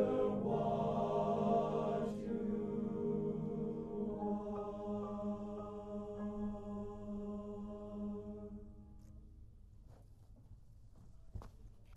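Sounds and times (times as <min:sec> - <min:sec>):
TTBB male choir singing a nursery rhyme: 0:00.0 - 0:08.6
piano: 0:00.0 - 0:10.5.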